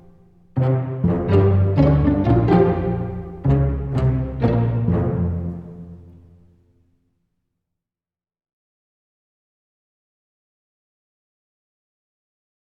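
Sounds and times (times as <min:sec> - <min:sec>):
intro music layer: 0:00.6 - 0:06.4.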